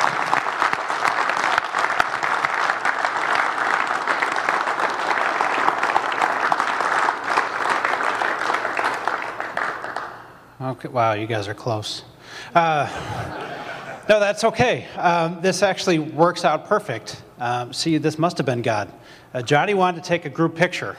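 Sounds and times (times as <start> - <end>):
audience applause: 0.0 - 10.4
speech: 10.7 - 13.4, 14.1 - 20.9
laughter: 12.6 - 14.4.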